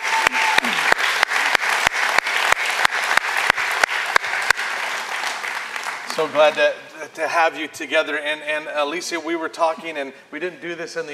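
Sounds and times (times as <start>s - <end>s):
church congregation applause: 0.0s - 6.6s
church congregation rhythmic claps: 0.0s - 6.6s
speech: 6.2s - 11.1s.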